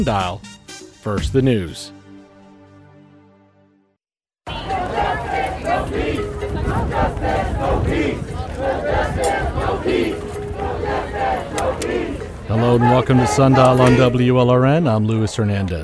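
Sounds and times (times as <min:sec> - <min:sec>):
speech: 0:00.0 - 0:02.0, 0:11.9 - 0:15.8
street protest crowd shouting and chanting against police brutality in South Florida: 0:04.5 - 0:15.8.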